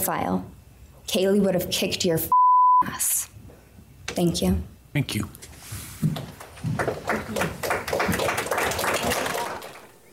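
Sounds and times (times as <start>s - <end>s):
speech: 0.0s - 3.3s, 4.2s - 6.9s
audience applause: 6.4s - 10.1s.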